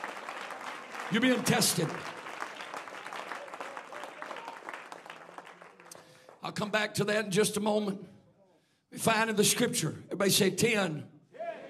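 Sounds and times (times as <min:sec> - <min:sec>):
crowd clapping hands: 0:00.0 - 0:06.8
speech: 0:01.1 - 0:02.2, 0:06.5 - 0:08.2, 0:09.0 - 0:11.1.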